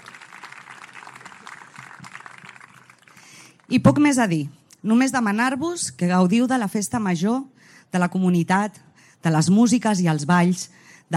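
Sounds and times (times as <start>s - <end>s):
applause: 0.0s - 3.8s
speech: 3.7s - 11.1s.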